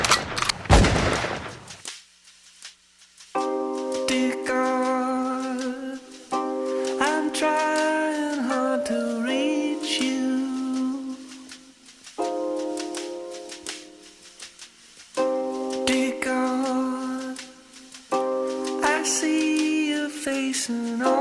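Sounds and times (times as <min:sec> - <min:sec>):
gunfire: 0:00.0 - 0:01.9
music with held tones: 0:03.2 - 0:21.1.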